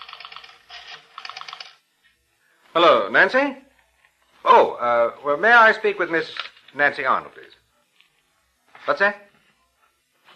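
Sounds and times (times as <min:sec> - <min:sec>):
telephone number being dialed: 0:00.0 - 0:01.8
speech: 0:02.8 - 0:03.6, 0:04.4 - 0:07.6, 0:08.8 - 0:09.3.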